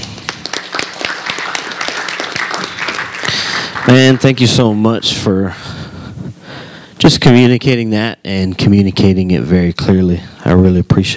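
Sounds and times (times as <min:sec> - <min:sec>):
audience applause: 0:00.0 - 0:04.9
speech: 0:03.9 - 0:05.6, 0:07.0 - 0:11.1.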